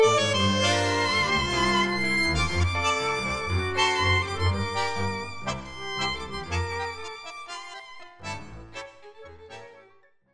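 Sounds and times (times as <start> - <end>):
flute playing in D minor: 0.0 - 5.7.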